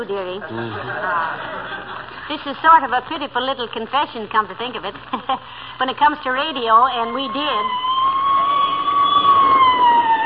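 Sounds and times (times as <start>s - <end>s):
speech: 0.0s - 7.9s
laughter: 0.4s - 2.4s
police squad car siren wailing as it passes: 6.5s - 10.2s.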